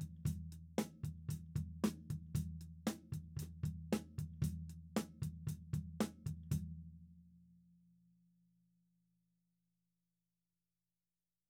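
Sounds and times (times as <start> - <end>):
tom drums: 0.0 - 6.7.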